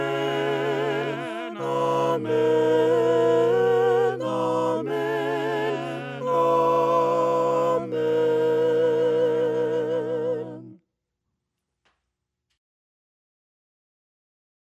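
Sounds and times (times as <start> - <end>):
voices singing hymns a cappella: 0.0 - 10.8.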